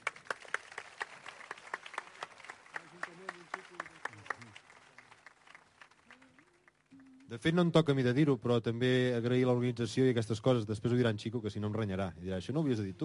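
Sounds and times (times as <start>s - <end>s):
audience applause: 0.0s - 7.4s
speech: 7.3s - 13.0s.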